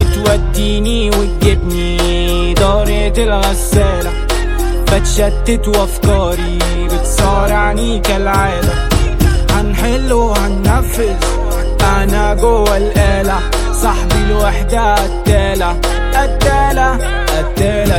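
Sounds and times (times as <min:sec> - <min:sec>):
Arabic musical tone ringtone: 0:00.0 - 0:17.9.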